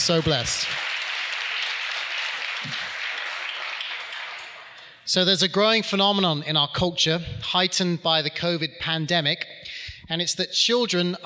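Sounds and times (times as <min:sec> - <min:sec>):
speech: 0:00.0 - 0:00.8, 0:02.6 - 0:02.8, 0:05.1 - 0:11.2
audience applause: 0:00.0 - 0:05.0.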